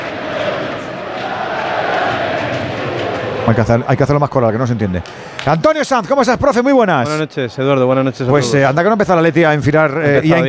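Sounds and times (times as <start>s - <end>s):
large crowd shouting a chant demanding resignation: 0.0s - 3.5s
speech: 3.5s - 10.4s.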